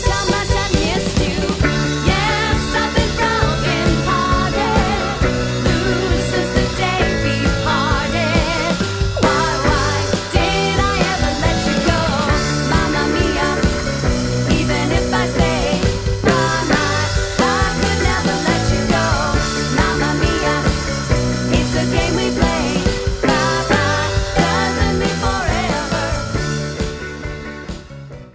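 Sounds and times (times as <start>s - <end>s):
tribute band playing: 0.0s - 28.3s.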